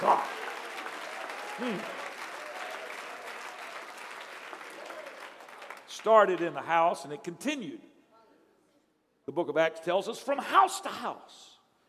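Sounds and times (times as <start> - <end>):
audience clapping: 0.0 - 6.9
person shouting: 1.6 - 1.9
speech: 1.6 - 2.0, 6.0 - 7.9, 9.3 - 11.5.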